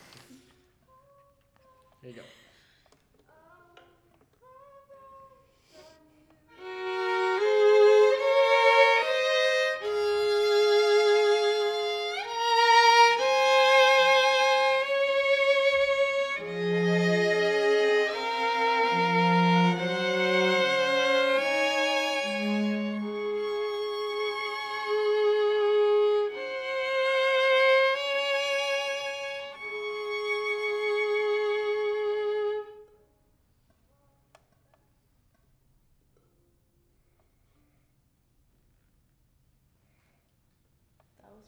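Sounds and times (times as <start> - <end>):
violin: 6.3 - 33.0.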